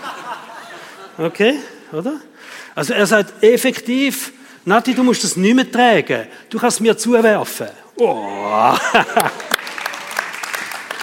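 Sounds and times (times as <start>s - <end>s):
laughter: 0.0s - 1.7s, 8.2s - 10.1s
speech: 1.2s - 9.6s
audience clapping: 8.8s - 11.0s.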